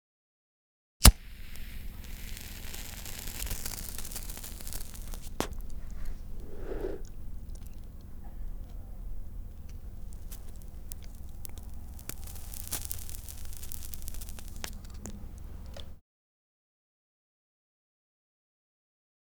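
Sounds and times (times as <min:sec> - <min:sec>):
person smoking a cigarette: 0:01.0 - 0:16.0.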